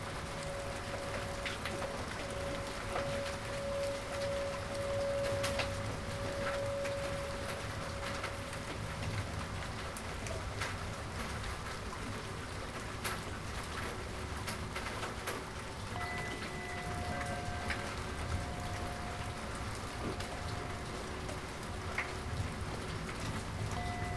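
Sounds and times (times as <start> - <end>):
white noise rain: 0.0 - 24.1.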